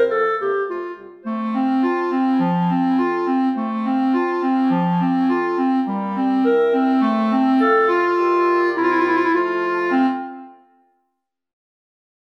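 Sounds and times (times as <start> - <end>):
clarinet: 0.0 - 11.0.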